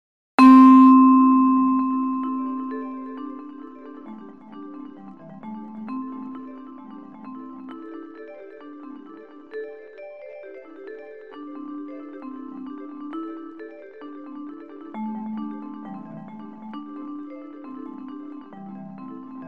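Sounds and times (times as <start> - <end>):
four-beat fractal tune: 0.4 - 3.9.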